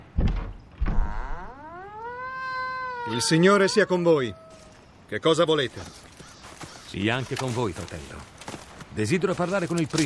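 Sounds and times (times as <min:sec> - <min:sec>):
door latch drawn open with heavy wooden thunks: 0:00.0 - 0:01.3
creaking groan of a door at a church: 0:00.2 - 0:03.1
speech: 0:03.1 - 0:04.4, 0:05.1 - 0:06.0, 0:06.9 - 0:08.4, 0:09.0 - 0:10.0.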